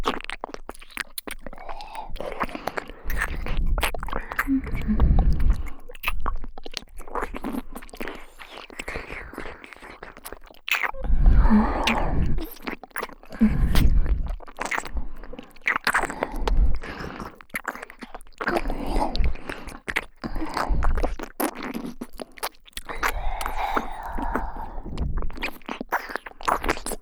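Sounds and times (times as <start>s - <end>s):
ear licking ASMR loop: 0.0s - 27.0s.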